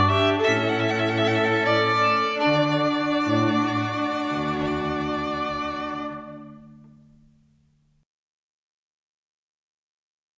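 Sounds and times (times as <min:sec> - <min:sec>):
festive string ensemble: 0:00.0 - 0:07.4.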